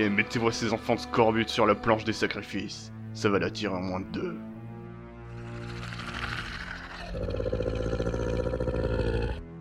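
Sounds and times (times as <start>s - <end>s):
speech: 0.0s - 4.5s, 7.1s - 7.9s
monster crocodile-boar growl: 5.4s - 9.5s.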